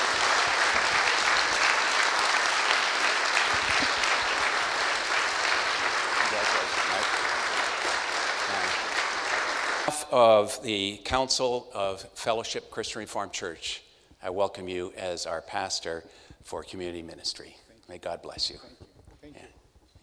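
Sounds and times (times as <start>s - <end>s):
audience applauding: 0.0s - 10.0s
speech: 10.1s - 18.8s.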